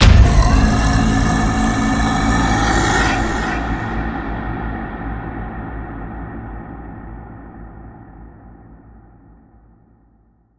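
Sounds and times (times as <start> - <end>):
giant hit: 0.0 - 5.5.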